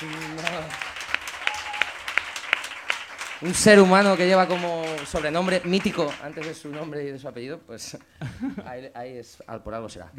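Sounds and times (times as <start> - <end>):
audience applause: 0.0 - 7.1
speech: 3.4 - 10.1
laughter: 7.8 - 8.8.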